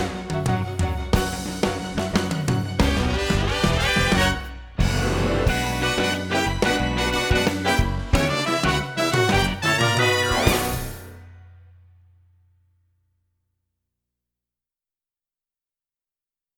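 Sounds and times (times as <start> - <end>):
exit music: 0.0 - 12.6.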